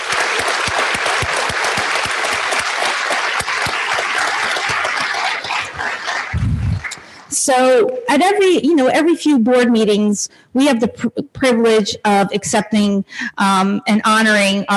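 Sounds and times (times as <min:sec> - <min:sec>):
audience applause: 0:00.0 - 0:07.3
speech: 0:07.5 - 0:14.7.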